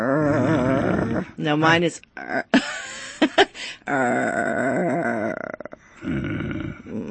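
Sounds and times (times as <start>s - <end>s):
person imitating an angry dog growl: 0.0s - 1.4s, 2.2s - 2.6s, 3.8s - 7.0s
speech: 0.0s - 7.0s.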